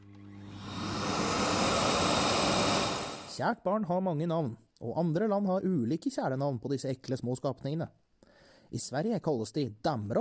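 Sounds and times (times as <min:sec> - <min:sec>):
vacuum cleaner running: 0:00.0 - 0:03.4
speech: 0:03.4 - 0:08.0, 0:08.7 - 0:10.1.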